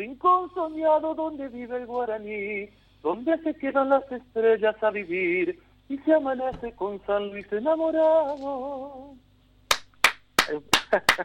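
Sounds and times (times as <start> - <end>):
speech: 0.0 - 9.2, 10.5 - 11.2
rhythmic clapping from a small audience at a Spanish-language show: 9.7 - 11.2.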